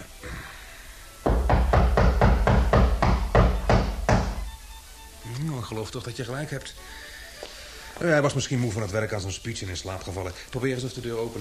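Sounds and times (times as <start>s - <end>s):
knocking on a wooden door: 1.2s - 4.6s
speech: 5.7s - 7.1s, 8.0s - 11.3s.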